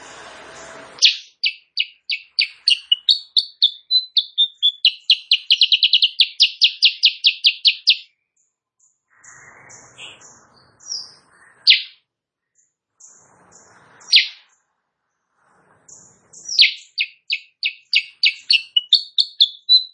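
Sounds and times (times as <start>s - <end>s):
Sooty-headed bulbul singing in the morning: 0.6s - 12.0s, 12.6s - 14.6s, 15.9s - 19.9s.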